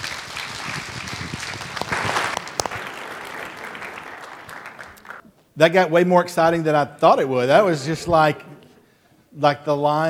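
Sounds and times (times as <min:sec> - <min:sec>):
crowd applause: 0:00.0 - 0:05.2
speech: 0:05.6 - 0:08.5, 0:09.4 - 0:10.0.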